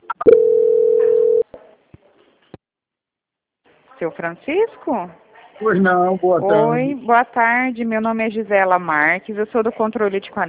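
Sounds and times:
telephone tone while a call is transferred: 0.1s - 1.5s
speech: 4.0s - 10.4s.

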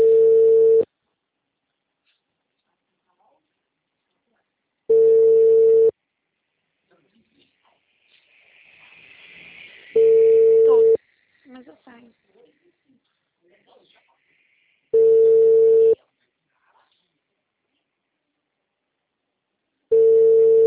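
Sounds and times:
WhatsApp call tone beeps: 0.0s - 0.9s, 4.9s - 5.9s, 10.0s - 11.0s, 15.0s - 16.0s, 19.9s - 20.6s.

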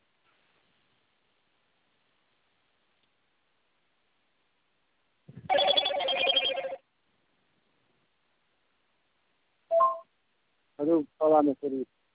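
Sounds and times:
telephone keypad tones dialing a number: 5.5s - 6.8s
single short telephone tone: 9.7s - 10.0s
speech: 10.8s - 12.0s.

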